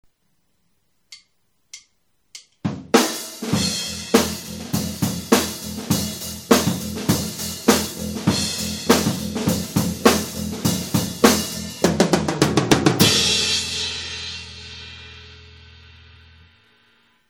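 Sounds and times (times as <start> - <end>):
live band playing at a gig: 3.5 - 13.7.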